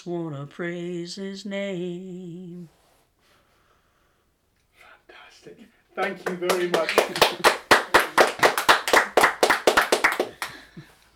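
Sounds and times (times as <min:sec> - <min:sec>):
speech: 0:00.0 - 0:02.8, 0:05.4 - 0:07.6
clapping in the room: 0:06.0 - 0:10.8.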